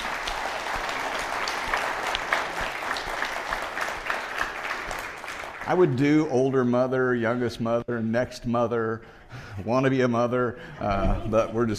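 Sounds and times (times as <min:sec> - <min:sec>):
audience applause: 0:00.0 - 0:06.0
speech: 0:05.7 - 0:11.7.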